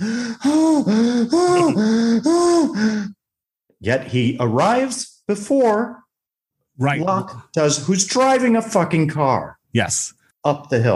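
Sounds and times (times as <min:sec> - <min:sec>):
man breathing heavily climbing stairs: 0:00.0 - 0:03.2
speech: 0:03.8 - 0:06.0, 0:06.8 - 0:10.9.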